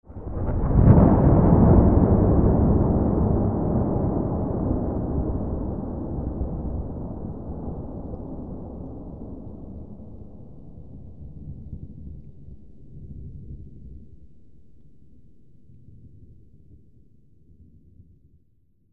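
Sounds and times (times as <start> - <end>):
huge thunder: 0.0 - 13.9.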